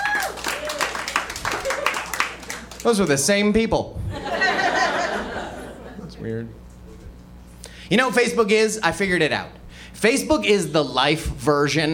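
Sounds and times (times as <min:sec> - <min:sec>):
scattered shouts: 0:00.0 - 0:02.1
audience clapping: 0:00.0 - 0:03.4
speech: 0:02.8 - 0:04.0, 0:06.2 - 0:06.6, 0:07.9 - 0:11.9
laughter: 0:04.1 - 0:06.3.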